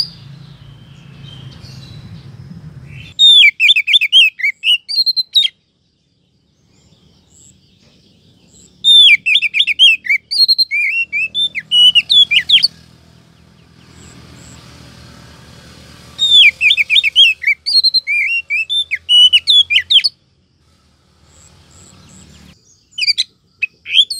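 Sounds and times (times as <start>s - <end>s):
Oriental magpie-robin rising whistle: 2.9s - 5.6s, 8.8s - 12.8s, 16.2s - 20.2s, 22.9s - 24.1s.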